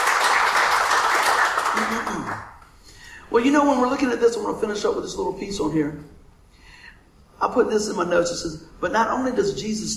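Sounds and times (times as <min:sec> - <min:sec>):
audience hand clapping: 0:00.0 - 0:02.6
speech: 0:03.3 - 0:06.2, 0:07.4 - 0:09.9.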